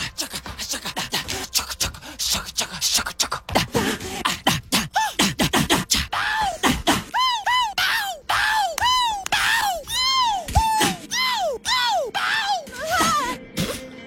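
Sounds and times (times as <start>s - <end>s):
isolated lead vocal ad-libs from a pop song, yelps, gasps and grunts: 0.0s - 14.0s
quick swooping sung cries: 6.1s - 13.5s.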